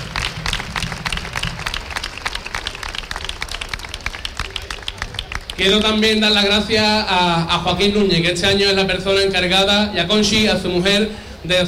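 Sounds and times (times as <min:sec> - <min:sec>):
audience applause: 0:00.0 - 0:06.7
speech: 0:05.6 - 0:11.6.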